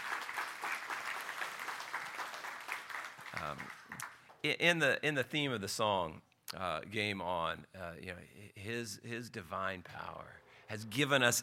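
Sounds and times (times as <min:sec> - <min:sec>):
audience applause: 0:00.0 - 0:04.2
speech: 0:03.4 - 0:03.8, 0:04.4 - 0:11.4.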